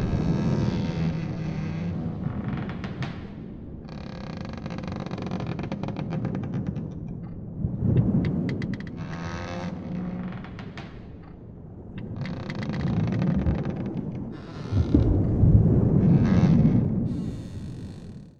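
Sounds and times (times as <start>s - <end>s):
ship creaking: 0.0s - 18.3s.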